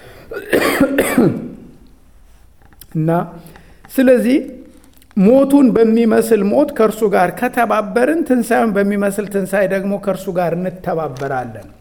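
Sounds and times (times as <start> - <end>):
speech: 0.3 - 1.5, 2.9 - 4.6, 5.2 - 11.7
person with a scratchy throat clearing throat: 0.3 - 1.8.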